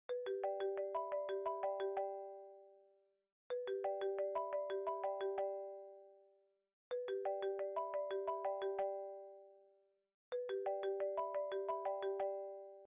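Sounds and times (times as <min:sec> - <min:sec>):
ringtone: 0:00.1 - 0:12.9.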